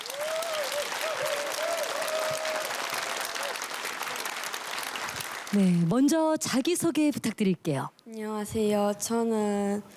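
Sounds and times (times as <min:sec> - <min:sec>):
audience applause: 0:00.0 - 0:05.7
speech: 0:05.5 - 0:09.9.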